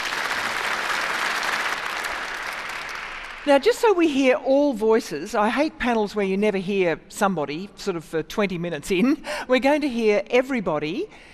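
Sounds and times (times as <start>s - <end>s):
audience applause welcoming a panel: 0.0s - 3.6s
speech: 3.4s - 11.3s.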